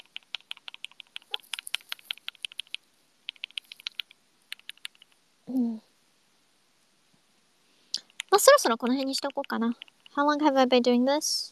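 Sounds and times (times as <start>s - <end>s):
typing on a computer keyboard: 0.0s - 5.2s, 8.0s - 10.2s
speech: 5.5s - 5.8s, 8.4s - 11.5s.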